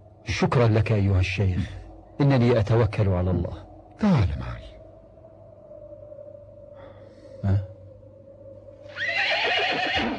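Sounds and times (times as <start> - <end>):
faint hum: 0.0 - 9.9
speech: 0.3 - 4.7
horse neighing: 8.9 - 10.1.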